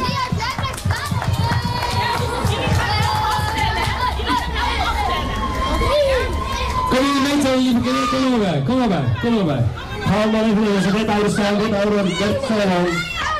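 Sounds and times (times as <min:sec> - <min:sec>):
crowd applause and cheering: 0:00.0 - 0:10.1
speech: 0:07.5 - 0:13.1.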